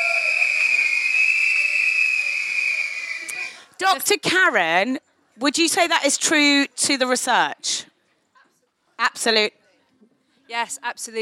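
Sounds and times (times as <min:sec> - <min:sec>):
whistle being blown: 0:00.0 - 0:03.5
speech: 0:03.8 - 0:07.9, 0:09.0 - 0:09.6, 0:10.5 - 0:11.2.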